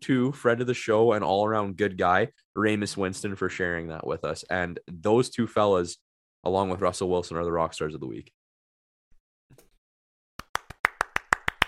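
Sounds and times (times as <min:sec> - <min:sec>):
speech: 0:00.0 - 0:08.4
applause sound effect: 0:10.4 - 0:11.6.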